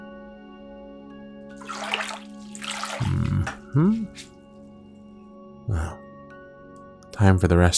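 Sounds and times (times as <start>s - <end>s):
water running and splashing while washing someone: 1.5s - 4.3s
speech: 3.0s - 4.3s, 7.2s - 7.7s.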